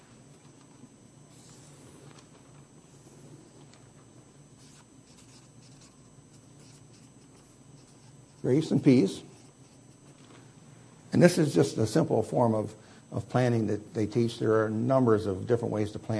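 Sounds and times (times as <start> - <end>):
pen or pencil writing by hand: 4.6 - 8.1
speech: 8.4 - 9.3, 11.2 - 16.1.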